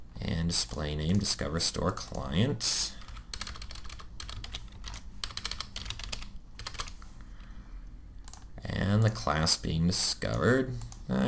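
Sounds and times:
speech: 0.5 - 3.0, 8.9 - 11.2
computer keyboard keys pressed for copy-paste shortcuts: 3.1 - 7.0.

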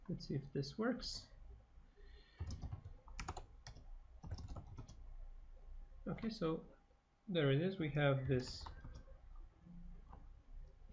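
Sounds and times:
speech: 0.1 - 1.3, 6.1 - 8.8
typing a mkdir command on a computer keyboard: 2.4 - 5.0, 8.4 - 9.1.

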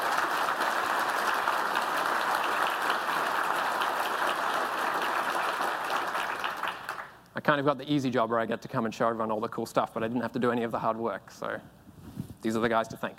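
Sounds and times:
crowd applauding: 0.0 - 7.2
speech: 7.5 - 11.8, 12.4 - 13.1.

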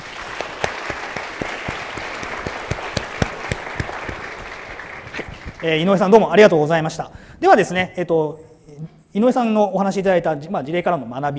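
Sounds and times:
audience applause: 0.0 - 6.0
speech: 5.6 - 11.3.

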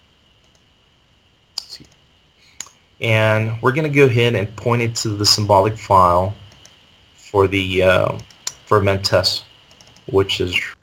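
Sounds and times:
computer mouse clicks in a software tracing tool: 0.4 - 0.7, 1.6 - 2.0, 6.5 - 6.8, 8.1 - 8.6, 9.6 - 10.1
speech: 3.0 - 6.4, 7.3 - 9.5, 10.1 - 10.8.

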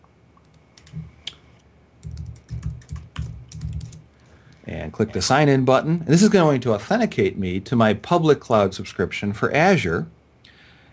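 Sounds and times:
typing a password on a computer keyboard: 2.0 - 4.0
speech: 4.7 - 10.2.

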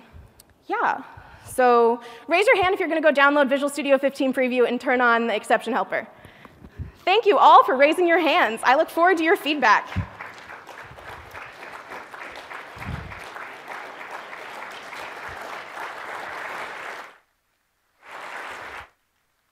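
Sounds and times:
speech: 0.7 - 6.2, 7.1 - 10.1
audience clapping: 9.9 - 17.3, 18.0 - 19.0.

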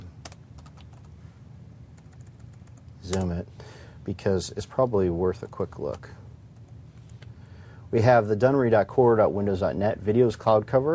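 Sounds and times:
low hum: 0.0 - 10.9
typing on a computer keyboard: 0.2 - 1.1, 2.0 - 3.3
speech: 3.0 - 6.2, 7.9 - 10.9.

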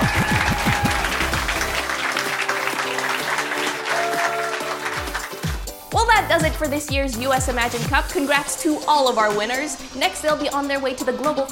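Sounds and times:
round of applause: 0.0 - 5.8
speech: 6.3 - 11.5.

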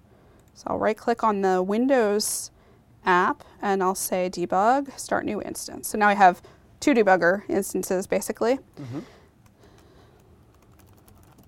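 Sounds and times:
speech: 0.6 - 9.2
typing on a computer keyboard while entering an item into an app: 9.4 - 11.4.

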